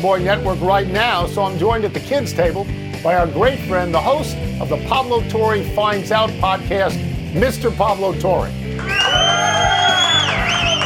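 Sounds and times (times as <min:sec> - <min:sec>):
speech: 0:00.0 - 0:08.6
audience cheering: 0:08.8 - 0:10.8.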